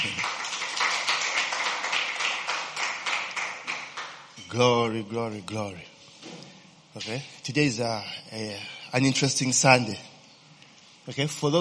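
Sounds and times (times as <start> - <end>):
audience clapping for worship team: 0.0 - 4.2
speech: 4.5 - 6.0, 7.0 - 10.1, 11.1 - 11.5.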